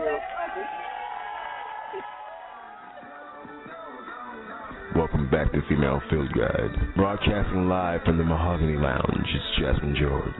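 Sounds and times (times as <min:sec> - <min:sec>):
round of applause: 0:00.0 - 0:04.3
crowd cheering: 0:00.0 - 0:05.1
speech: 0:05.3 - 0:10.3.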